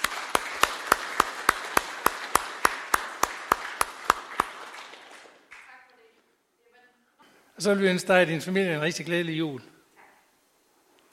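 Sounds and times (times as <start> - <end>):
rhythmic unison clapping: 0.0 - 5.8
speech: 7.6 - 9.7.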